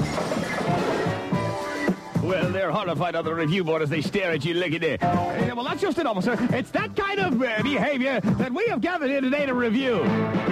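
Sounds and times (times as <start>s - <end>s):
tables knocked over with a crash: 0.0s - 1.9s
speech: 2.3s - 10.4s.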